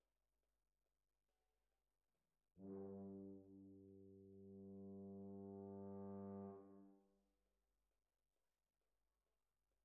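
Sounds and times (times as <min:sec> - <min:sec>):
horns: 0:02.6 - 0:07.0.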